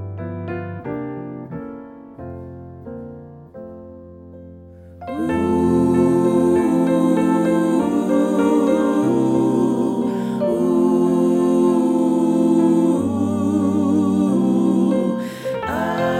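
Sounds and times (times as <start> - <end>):
SATB four-part choir singing: 5.0 - 16.1.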